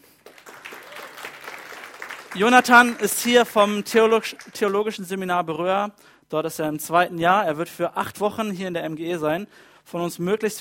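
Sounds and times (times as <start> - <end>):
audience applause: 0.0 - 5.0
speech: 2.3 - 10.5.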